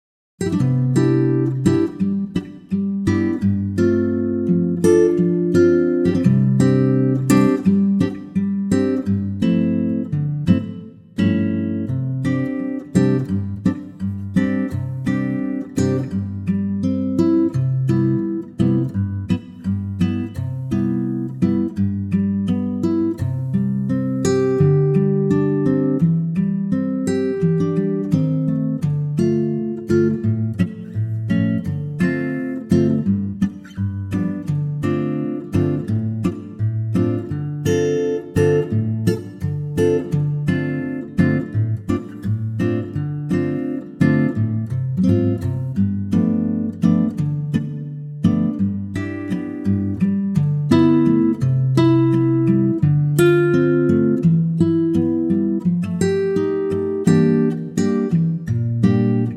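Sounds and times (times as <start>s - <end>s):
acoustic guitar in C: 0.4s - 59.3s.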